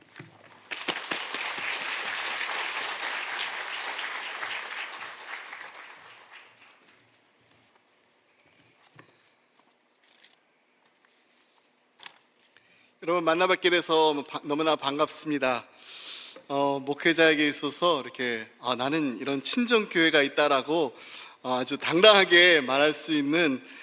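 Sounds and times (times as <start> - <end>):
audience applause: 0.6 - 7.0
speech: 13.0 - 23.8.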